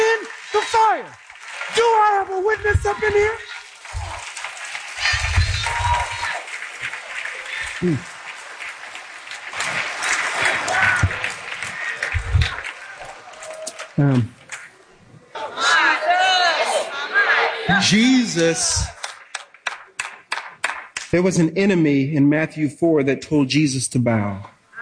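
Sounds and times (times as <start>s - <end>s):
church congregation shouting: 0.0s - 4.2s, 5.0s - 8.2s, 10.3s - 14.0s, 15.4s - 19.0s
church congregation clapping during a sermon: 0.0s - 14.8s, 17.8s - 21.5s
church congregation crowd noise: 0.0s - 21.4s
speech: 1.0s - 3.5s, 7.8s - 8.1s, 14.0s - 14.4s, 17.9s - 19.0s, 21.1s - 24.6s.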